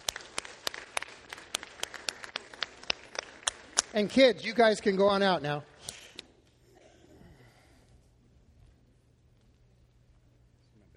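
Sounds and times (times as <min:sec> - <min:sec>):
round of applause from a group: 0:00.0 - 0:06.0
speech: 0:03.9 - 0:05.7.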